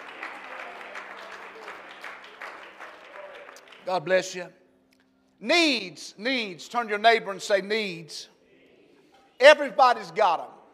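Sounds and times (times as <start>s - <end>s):
large crowd applauding in a big hall: 0.0s - 4.1s
speech: 3.9s - 4.6s, 5.4s - 8.3s, 9.4s - 10.5s.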